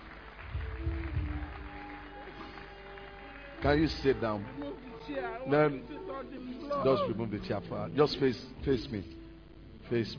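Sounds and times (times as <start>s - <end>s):
audience applauding: 0.0s - 6.3s
speech: 3.6s - 9.2s, 9.9s - 10.1s.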